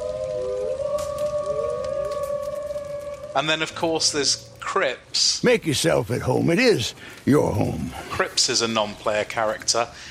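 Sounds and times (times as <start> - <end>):
wolves howling in the distance: 0.0 - 4.8
speech: 3.4 - 10.0.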